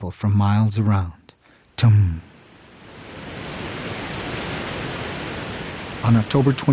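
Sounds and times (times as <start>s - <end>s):
speech: 0.0s - 1.2s, 1.8s - 2.3s, 6.0s - 6.7s
river waterfall pounding over rock: 3.0s - 6.7s.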